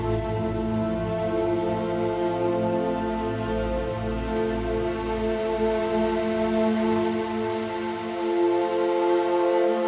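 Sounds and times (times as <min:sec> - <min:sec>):
orchestral storm drone: 0:00.0 - 0:09.8.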